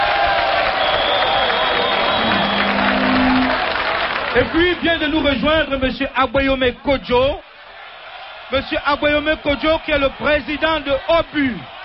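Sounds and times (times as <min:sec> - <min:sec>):
studio audience applause: 0:00.0 - 0:05.8, 0:07.5 - 0:11.8
speech: 0:04.4 - 0:07.5, 0:08.5 - 0:11.7.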